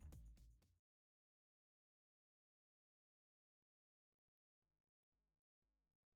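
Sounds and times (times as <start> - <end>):
big beat alternate mix: 0.0 - 0.6.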